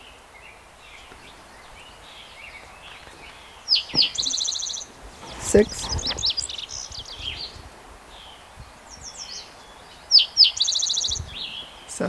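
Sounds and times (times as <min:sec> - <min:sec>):
other birds chirping: 0:00.0 - 0:12.0
Spotted Towhee singing: 0:02.6 - 0:07.9, 0:09.2 - 0:12.0
speech: 0:05.5 - 0:06.0.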